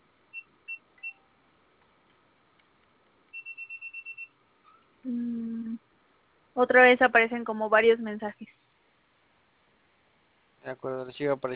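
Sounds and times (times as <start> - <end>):
keypad beeps from pressing pound key: 0.4 - 1.3, 3.4 - 4.3
speech: 5.0 - 5.3, 6.6 - 8.6, 10.7 - 11.5
low buzzing tone: 5.1 - 5.8.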